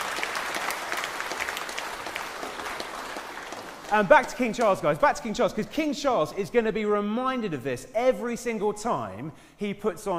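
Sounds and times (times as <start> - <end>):
crowd clapping: 0.0 - 5.0
speech: 3.9 - 10.1.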